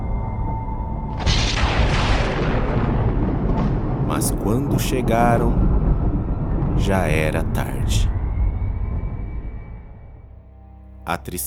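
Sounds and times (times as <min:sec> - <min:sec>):
thunder: 0:01.1 - 0:10.2
speech: 0:04.2 - 0:05.8, 0:06.8 - 0:08.1, 0:11.1 - 0:11.4.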